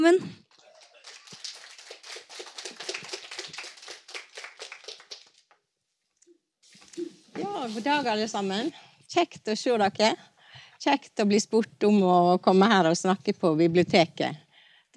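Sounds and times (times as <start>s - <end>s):
speech: 0.0s - 0.4s, 7.6s - 14.4s
audience applause: 0.4s - 5.5s.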